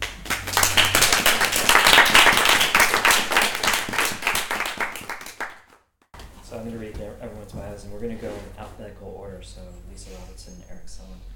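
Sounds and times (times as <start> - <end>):
audience applause: 0.0 - 5.7
speech: 8.0 - 11.3.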